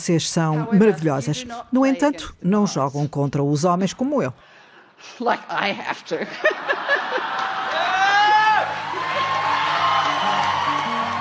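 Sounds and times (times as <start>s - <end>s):
speech: 0.0s - 6.9s
laughter: 5.8s - 9.8s
crowd applauding: 6.8s - 11.1s
whoops and cheers: 7.4s - 11.1s.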